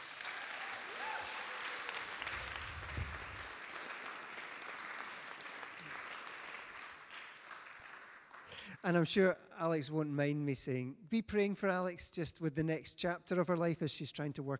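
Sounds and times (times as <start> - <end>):
audience cheering and applause: 0.0 - 8.6
speech: 8.8 - 14.5.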